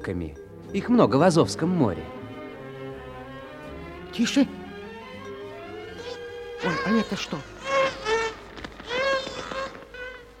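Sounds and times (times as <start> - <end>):
speech: 0.0 - 2.2, 4.2 - 4.6, 6.6 - 7.5
dolphin thin high-pitched squeaks: 5.9 - 10.3.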